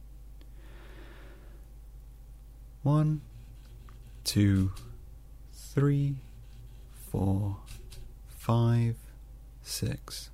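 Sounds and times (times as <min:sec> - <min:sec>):
slow deep breath: 0:00.5 - 0:01.7
speech: 0:02.8 - 0:03.3, 0:04.2 - 0:04.9, 0:05.8 - 0:06.3, 0:07.1 - 0:07.8, 0:08.5 - 0:09.0, 0:09.6 - 0:10.3.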